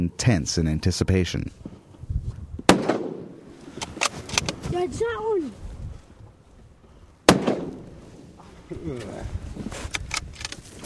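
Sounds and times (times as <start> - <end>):
speech: 0.0 - 1.7, 4.8 - 5.6, 8.8 - 9.9
rifle shot: 2.7 - 3.4, 7.3 - 8.0.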